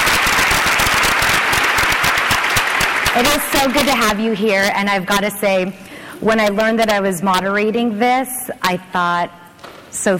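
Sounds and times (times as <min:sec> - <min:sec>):
dense sustained crowd applause: 0:00.0 - 0:04.1
speech: 0:03.2 - 0:10.1.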